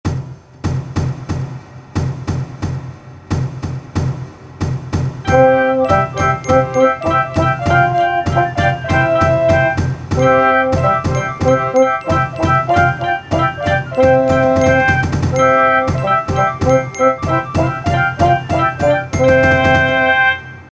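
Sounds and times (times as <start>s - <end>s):
march music: 0.0s - 20.7s.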